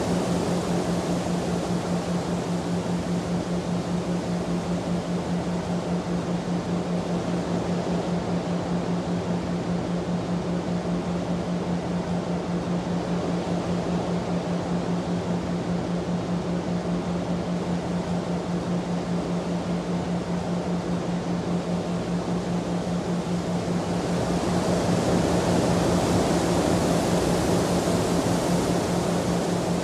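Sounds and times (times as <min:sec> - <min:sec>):
soothing winds: 0:00.0 - 0:29.8.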